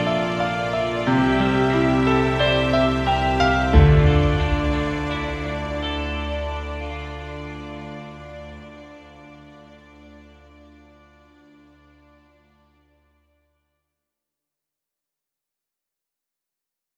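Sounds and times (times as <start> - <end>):
dramatic guitar: 0.0 - 8.5.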